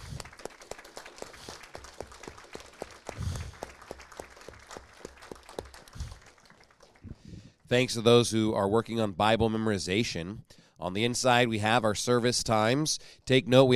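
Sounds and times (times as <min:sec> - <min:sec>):
audience applause: 0:00.0 - 0:07.1
speech: 0:07.7 - 0:13.7.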